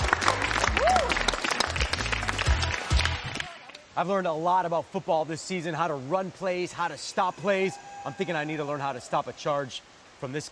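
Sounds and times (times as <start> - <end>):
audience applause: 0.0 - 3.8
speech: 4.0 - 10.4.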